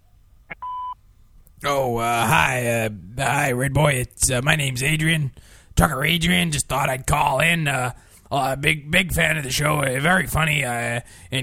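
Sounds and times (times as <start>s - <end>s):
voicemail beep: 0.5s - 1.0s
speech: 1.6s - 11.4s.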